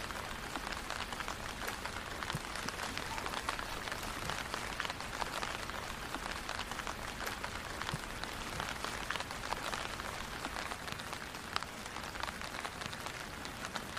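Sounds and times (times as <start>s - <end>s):
steady rain pattering on surfaces: 0.0s - 13.9s.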